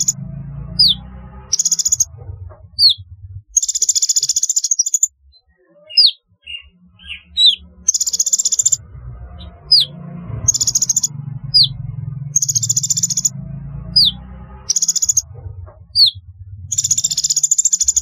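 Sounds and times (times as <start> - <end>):
sunbird chirps and buzzing trills: 0.0 - 2.1, 2.8 - 3.0, 3.6 - 15.3, 16.0 - 18.0.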